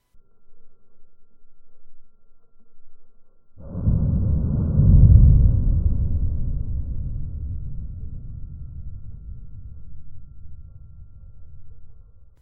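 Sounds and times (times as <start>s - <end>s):
sped-up seismometer recording of explosion tremor: 3.6s - 12.3s.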